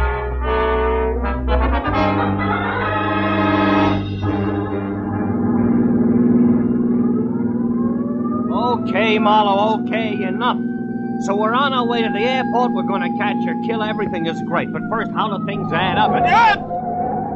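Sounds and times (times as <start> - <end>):
police car sirens wailing: 0.0 - 17.3
police car engine rumble: 1.1 - 17.3
speech: 9.2 - 16.7.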